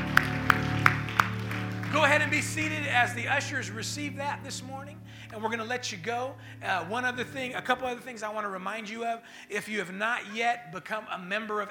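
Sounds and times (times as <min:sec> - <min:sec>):
audience clapping in a steady beat: 0:00.0 - 0:03.3
sustained low musical drone: 0:00.0 - 0:08.1
speech: 0:02.2 - 0:11.6.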